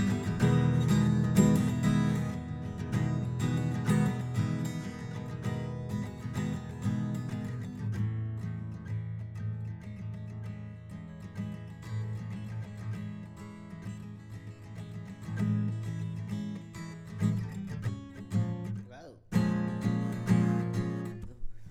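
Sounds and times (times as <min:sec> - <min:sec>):
Takamine guitar: 0:00.0 - 0:21.7.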